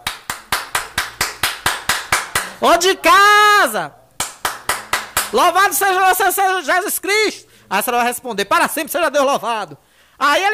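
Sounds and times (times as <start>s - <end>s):
hand clapping to call at a gate: 0.0s - 2.6s, 4.2s - 5.6s
speech: 2.6s - 4.0s, 5.3s - 10.5s.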